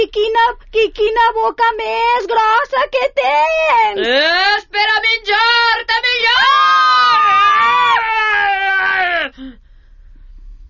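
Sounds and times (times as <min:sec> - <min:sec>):
speech: 0:00.0 - 0:07.8
girl screaming: 0:06.3 - 0:09.3.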